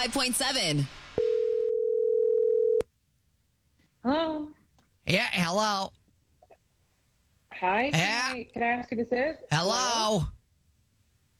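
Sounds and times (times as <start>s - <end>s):
speech: 0.0s - 1.0s, 4.0s - 6.0s, 7.6s - 10.4s
telephone dial tone before a prank call: 1.2s - 2.8s.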